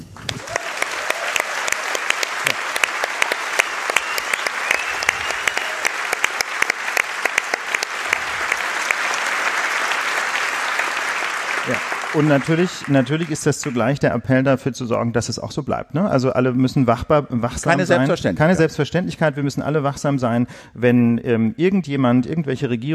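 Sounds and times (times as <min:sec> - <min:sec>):
audience applause: 0:00.0 - 0:14.0
speech: 0:12.2 - 0:22.9.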